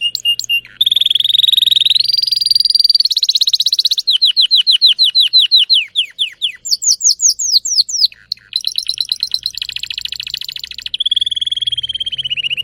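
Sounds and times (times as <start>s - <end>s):
Spanish Timbrado canary song: 0.0s - 12.6s.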